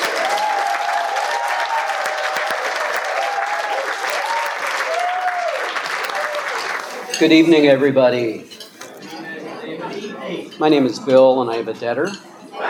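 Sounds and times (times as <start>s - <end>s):
audience applause at a Debtors Anonymous meeting: 0.0s - 7.1s
speech: 7.2s - 8.5s, 10.6s - 12.2s.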